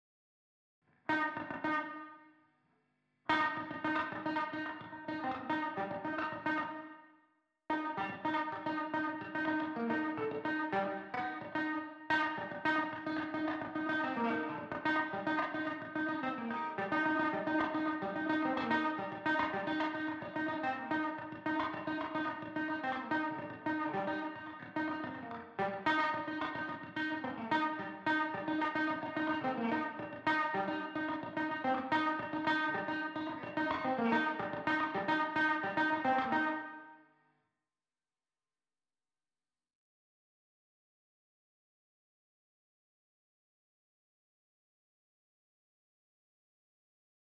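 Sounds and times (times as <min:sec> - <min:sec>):
guitar: 0:01.0 - 0:02.3, 0:03.3 - 0:07.0, 0:07.7 - 0:37.1.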